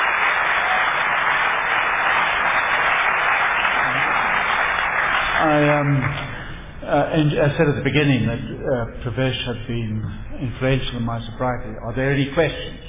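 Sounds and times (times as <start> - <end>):
sustained audience applause for speakers: 0.0 - 6.5
speech: 7.1 - 12.8.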